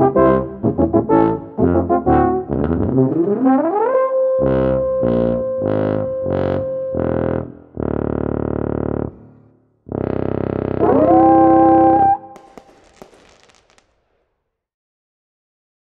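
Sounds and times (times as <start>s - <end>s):
tuba quartet playing: 0.0s - 9.2s, 9.9s - 12.4s.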